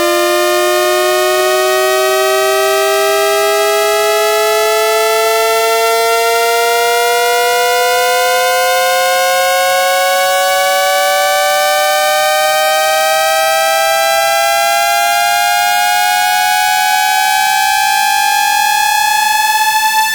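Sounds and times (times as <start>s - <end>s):
sawtooth wave sweeping from 55 to 880 Hz: 0.0s - 20.1s.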